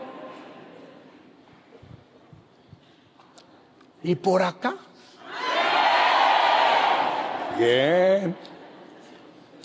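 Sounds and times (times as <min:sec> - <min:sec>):
speech: 0:04.0 - 0:04.9, 0:07.6 - 0:08.6
crowd of worshippers shouting and cheering: 0:05.3 - 0:07.9.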